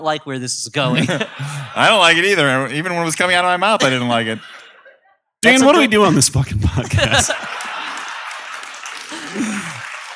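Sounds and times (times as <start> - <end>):
speech: 0.0 - 4.5, 5.4 - 7.5
laughter: 0.8 - 2.6, 3.6 - 5.3, 6.5 - 10.1
audience applause: 7.1 - 10.1.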